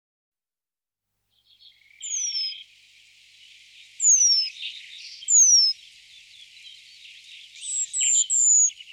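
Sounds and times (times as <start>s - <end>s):
Eurasian penduline tit thin high whistles sliding downward: 2.0s - 2.6s, 4.0s - 5.8s, 7.6s - 8.8s.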